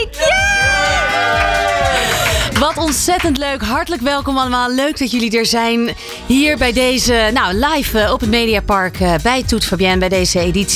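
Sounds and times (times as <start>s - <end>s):
live audience cheering: 0.0s - 3.2s
speech: 2.6s - 10.7s.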